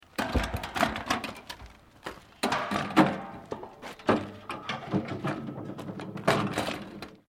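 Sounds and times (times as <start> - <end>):
trolley jack being put on a truck: 0.0 - 7.2.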